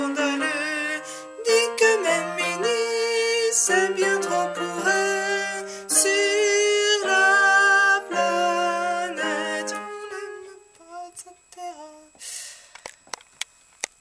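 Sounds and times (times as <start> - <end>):
choir of alto voices: 0.0 - 10.8.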